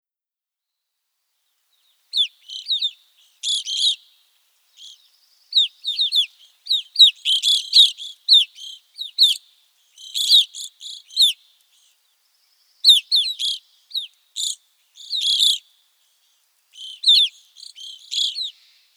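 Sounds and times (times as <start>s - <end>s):
evening grosbeak calling: 2.1s - 4.2s, 4.8s - 12.0s, 12.8s - 15.6s, 16.7s - 18.9s.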